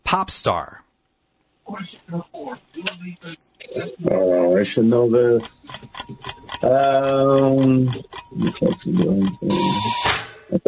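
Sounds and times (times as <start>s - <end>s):
speech: 0.1s - 0.9s, 1.7s - 10.6s
voice-like tones: 1.7s - 9.9s
quiz timer ticking: 5.2s - 10.1s.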